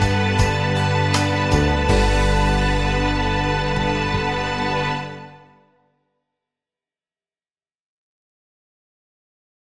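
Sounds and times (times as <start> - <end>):
backing track: 0.0 - 5.8.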